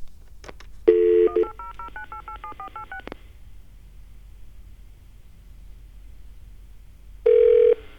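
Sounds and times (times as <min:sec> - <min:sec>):
steady telephone tone: 0:00.9 - 0:03.0, 0:07.3 - 0:07.9
telephone keypad dialing tones calling a toll-free 1-800 number: 0:00.9 - 0:03.1.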